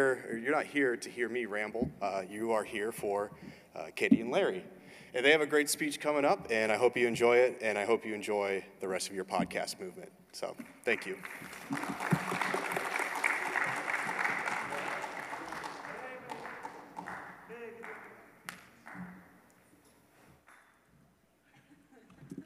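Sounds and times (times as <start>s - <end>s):
speech: 0.0s - 12.3s
audience clapping: 10.9s - 19.2s.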